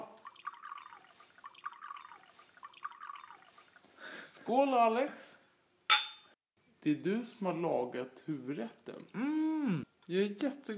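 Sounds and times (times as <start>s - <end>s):
pretend wine pouring into a glass: 0.0s - 3.8s
speech: 4.5s - 5.4s, 6.8s - 10.7s.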